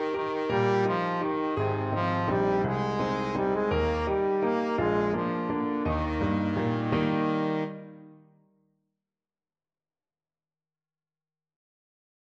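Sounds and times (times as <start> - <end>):
trombone playing: 0.0 - 8.0.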